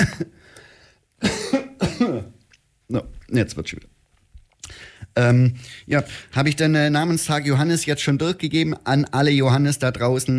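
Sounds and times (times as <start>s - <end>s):
harsh coughing from a pretzel stuck in the throat: 0.0s - 0.4s, 1.2s - 2.4s
speech: 0.0s - 0.4s, 2.9s - 3.9s, 5.2s - 10.3s.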